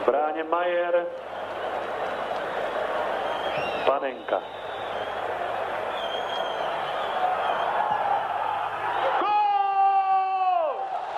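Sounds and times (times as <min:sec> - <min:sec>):
speech: 0:00.1 - 0:01.6, 0:03.0 - 0:04.6
stadium crowd roaring at a penalty goal, 1976 European Championship: 0:01.0 - 0:11.1
long sustained shouted voice: 0:09.1 - 0:10.8.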